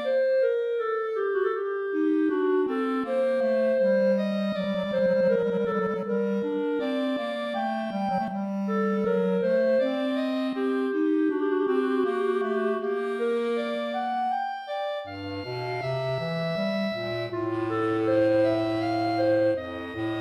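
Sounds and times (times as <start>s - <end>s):
clarinet playing andante duet: 0.0s - 20.1s.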